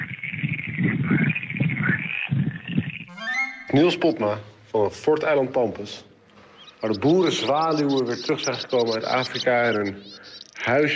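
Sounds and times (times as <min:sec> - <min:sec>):
chorus of croaking frogs: 0:00.0 - 0:04.0, 0:06.1 - 0:10.9
speech: 0:03.7 - 0:06.1, 0:06.8 - 0:10.9.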